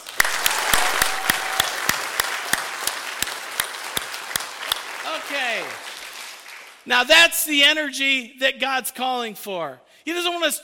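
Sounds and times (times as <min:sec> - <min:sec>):
crowd applauding: 0:00.0 - 0:06.9
loud rhythmic claps: 0:00.0 - 0:07.2
speech: 0:06.8 - 0:10.6.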